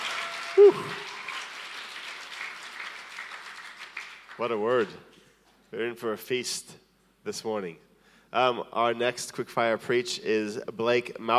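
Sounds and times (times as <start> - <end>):
church audience applauding a preacher: 0.0 - 4.9
speech: 0.6 - 1.1, 4.4 - 11.3.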